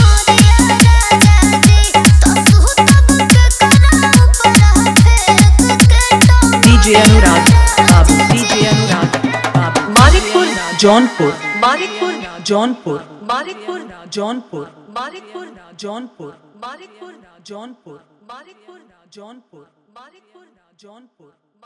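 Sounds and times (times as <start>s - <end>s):
hard dholki bass mix: 0.0s - 11.9s.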